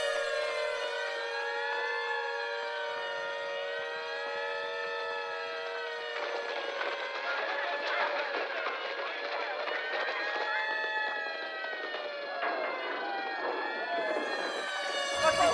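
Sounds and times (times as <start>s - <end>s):
air raid siren wailing during an air raid drill: 0.0s - 15.5s.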